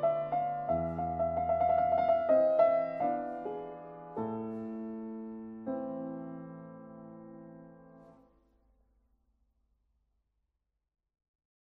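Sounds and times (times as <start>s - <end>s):
waltz music: 0.0s - 6.9s.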